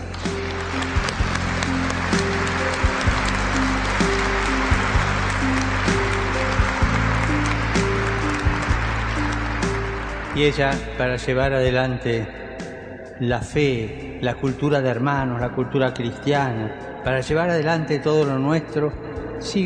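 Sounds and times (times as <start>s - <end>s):
applause: 0.0s - 11.7s
speech: 10.4s - 12.4s, 13.2s - 19.6s.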